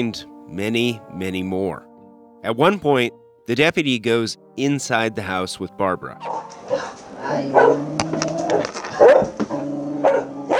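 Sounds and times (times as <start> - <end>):
speech: 0.0 - 9.4
several dogs barking and yipping: 6.2 - 10.5.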